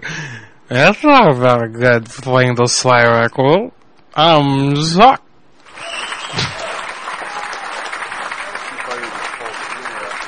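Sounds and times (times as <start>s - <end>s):
speech: 0.7s - 5.2s
people clapping: 5.6s - 10.2s.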